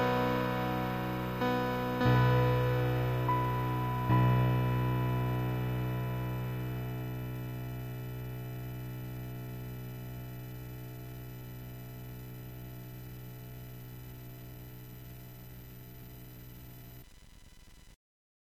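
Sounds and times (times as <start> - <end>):
piano instrumental: 0.0 - 7.8.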